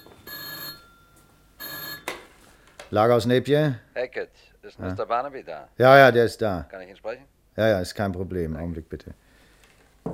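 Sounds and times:
telephone bell ringing in a night watchman's office: 0.0s - 2.2s
speech: 2.9s - 9.2s.

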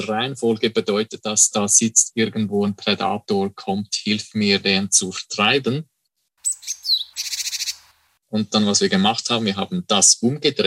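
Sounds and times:
speech: 0.0s - 5.9s, 8.3s - 10.6s
bird alarm call of sharp high whistled notes: 6.4s - 8.0s
bird recruitment call of buzzy high-pitched notes: 6.5s - 7.9s.

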